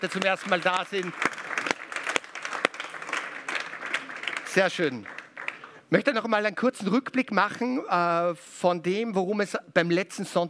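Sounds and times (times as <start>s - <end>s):
speech: 0.0s - 1.5s, 4.5s - 5.2s, 5.9s - 10.4s
church congregation clapping welcoming first-time visitors: 0.0s - 5.8s.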